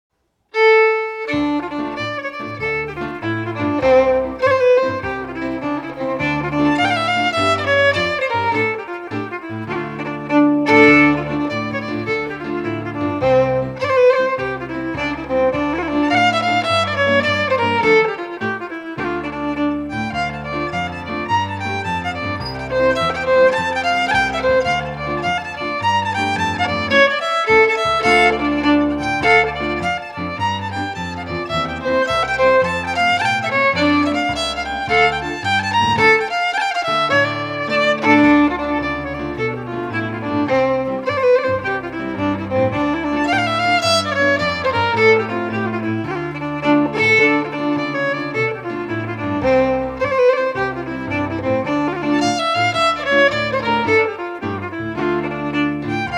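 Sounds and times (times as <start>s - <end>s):
Scottish fiddle playing a reel: 0.5s - 56.1s.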